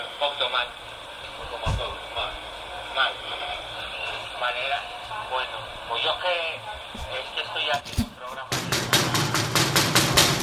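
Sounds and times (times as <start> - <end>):
speech: 0.0 - 2.4, 3.0 - 3.7, 4.4 - 8.6
knocking on a door: 8.5 - 10.4.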